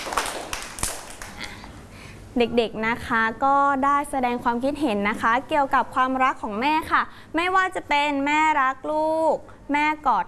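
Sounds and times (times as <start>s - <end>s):
children clapping hands: 0.0s - 1.4s
speech: 2.4s - 10.2s.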